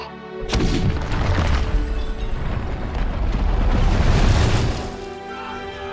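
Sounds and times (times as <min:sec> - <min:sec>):
Tower of Barad-dûr exploding in The Lord of the Rings: 0:00.5 - 0:05.0
roaring rumble of crashing debris: 0:00.5 - 0:05.1.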